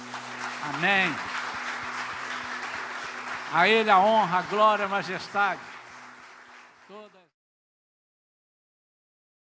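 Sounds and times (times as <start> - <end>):
audience applauding: 0.0 - 7.3
speech: 0.7 - 1.3, 3.5 - 5.7.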